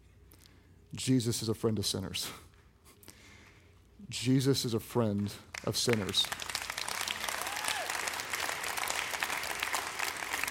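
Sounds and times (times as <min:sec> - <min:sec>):
speech: 0:00.9 - 0:02.5, 0:04.1 - 0:06.5
scattered polite clapping from audience: 0:05.5 - 0:10.5.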